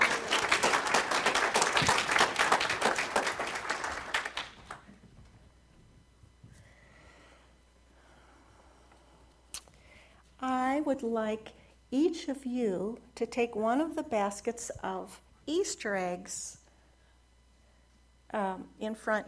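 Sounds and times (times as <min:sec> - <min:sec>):
audience applause: 0:00.0 - 0:04.9
speech: 0:10.9 - 0:16.6, 0:18.3 - 0:19.2.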